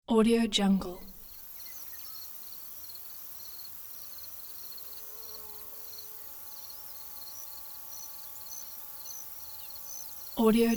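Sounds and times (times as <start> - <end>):
speech: 0.1 - 1.1, 10.4 - 10.7
crickets chirping: 1.0 - 10.7.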